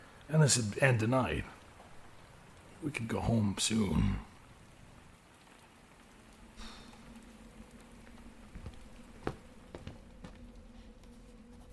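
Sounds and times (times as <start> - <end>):
rain pattering on a roof: 0.0 - 11.7
speech: 0.3 - 1.6, 2.8 - 4.3
low hum: 5.8 - 11.7.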